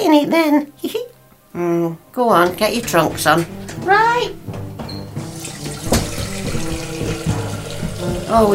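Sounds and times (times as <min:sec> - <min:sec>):
speech: 0:00.0 - 0:01.0, 0:01.6 - 0:04.4, 0:08.3 - 0:08.5
running tap water pouring into a bowl: 0:05.2 - 0:08.5.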